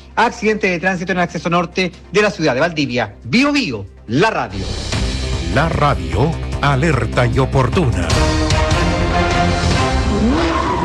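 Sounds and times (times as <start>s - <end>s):
speech: 0.2s - 4.8s, 5.5s - 8.4s
rally car accelerating hard, engine roaring: 9.4s - 10.8s
rally car tires squealing: 9.7s - 10.8s.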